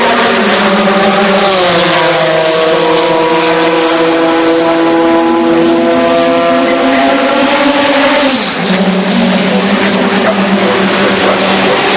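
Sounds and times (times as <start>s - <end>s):
BMW car pit stop: 0.0s - 11.9s.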